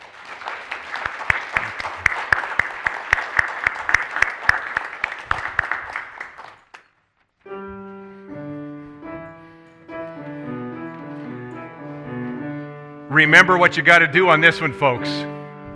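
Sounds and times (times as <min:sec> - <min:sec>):
audience clapping: 0:00.0 - 0:07.1
speech: 0:13.2 - 0:15.4.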